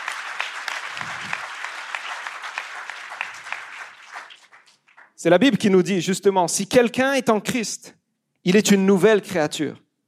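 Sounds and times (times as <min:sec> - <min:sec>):
audience applauding: 0:00.0 - 0:05.2
speech: 0:05.2 - 0:09.8.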